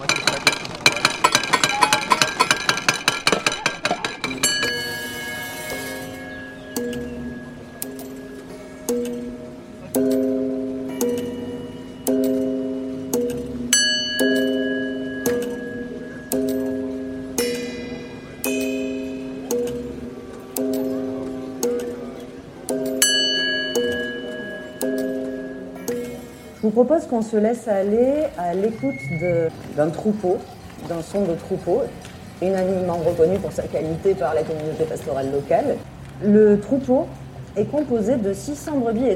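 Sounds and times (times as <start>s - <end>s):
small hammers tapping tin cans and sardine tins: 0.0s - 26.6s
speech: 26.8s - 39.1s.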